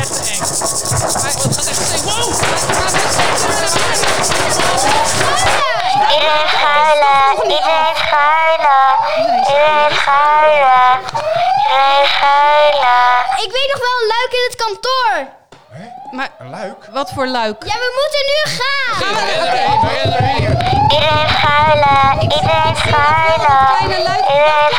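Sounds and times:
laughter: 0:00.0 - 0:14.2, 0:15.7 - 0:24.7
noisy commotion: 0:00.0 - 0:24.7
wailing alarm siren: 0:00.0 - 0:24.7
speech: 0:11.0 - 0:24.7.

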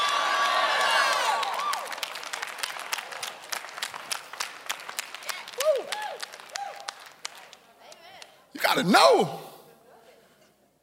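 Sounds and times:
crowd screaming and cheering: 0:00.0 - 0:02.0
loud audience applause: 0:00.0 - 0:07.7
speech: 0:08.8 - 0:09.4.

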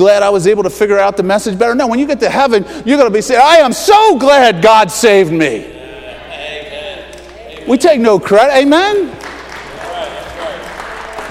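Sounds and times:
speech: 0:00.0 - 0:05.8, 0:07.7 - 0:09.3
audience clapping: 0:07.2 - 0:11.2.

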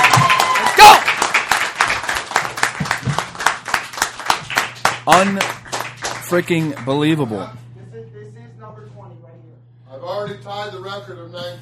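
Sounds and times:
audience clapping: 0:00.0 - 0:07.2
speech: 0:05.1 - 0:05.5, 0:06.3 - 0:07.7, 0:10.1 - 0:11.5.

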